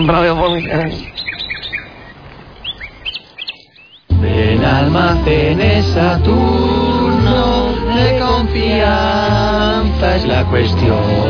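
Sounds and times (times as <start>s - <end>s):
speech: 0.0s - 1.2s, 4.2s - 11.2s
small birds chirping: 0.0s - 4.1s.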